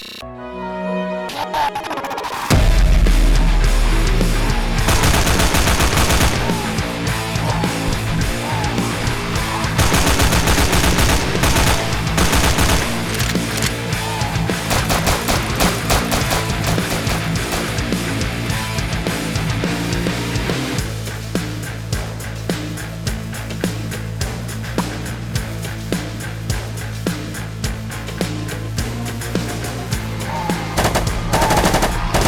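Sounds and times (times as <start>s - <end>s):
loud video game trailer music: 0.3s - 32.2s
rapid machine-gun fire in video game trailer: 4.9s - 6.7s, 9.8s - 13.4s, 14.7s - 17.9s, 30.8s - 32.2s.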